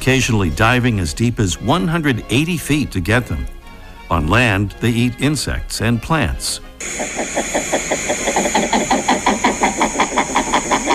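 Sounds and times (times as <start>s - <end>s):
speech: 0.0s - 9.1s
Somateria spectabilis king eider males and females calling: 6.8s - 10.9s.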